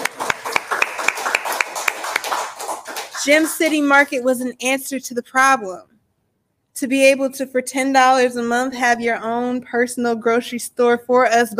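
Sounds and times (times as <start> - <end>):
crowd clapping in rhythm: 0.0 - 4.1
speech: 3.2 - 5.9, 6.8 - 11.5.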